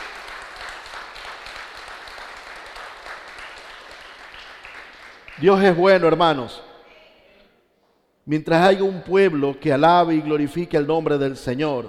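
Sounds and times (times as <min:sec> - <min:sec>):
congregation applause during a church service: 0:00.0 - 0:06.4
speech: 0:05.4 - 0:06.7, 0:08.3 - 0:11.8.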